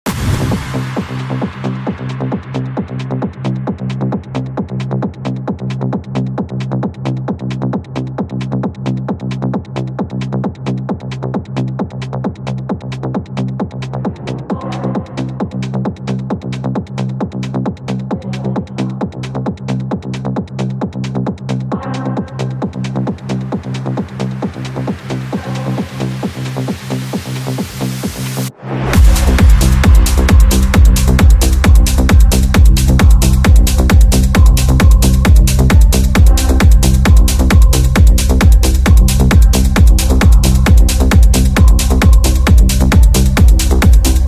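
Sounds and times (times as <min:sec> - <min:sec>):
techno music: 0:00.1 - 0:44.2.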